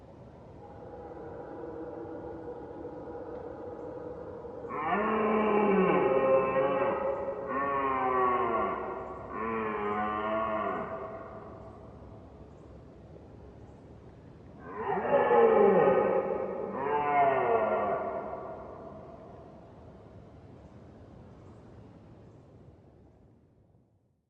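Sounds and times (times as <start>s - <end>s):
red deer roaring: 4.6s - 11.5s, 14.6s - 19.0s.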